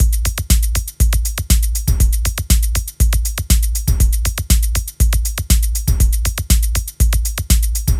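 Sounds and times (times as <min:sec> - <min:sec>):
120 BPM trance drum and percussion loop: 0:00.0 - 0:07.9.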